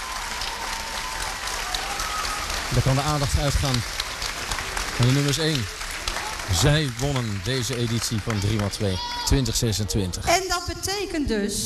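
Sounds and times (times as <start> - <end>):
crowd applauding at the prize ceremony of a youth cycling tour: 0.0 - 9.8
speech: 2.7 - 4.0, 5.0 - 5.8, 6.5 - 11.6.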